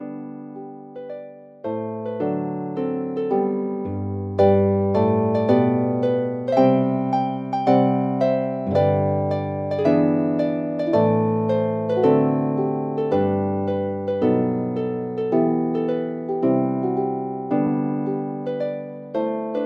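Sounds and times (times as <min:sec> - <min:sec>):
harp: 0:00.0 - 0:19.6.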